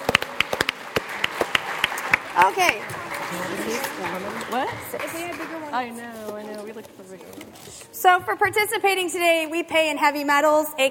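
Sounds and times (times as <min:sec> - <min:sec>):
scattered audience hand claps: 0:00.0 - 0:06.0
speech: 0:02.4 - 0:10.8.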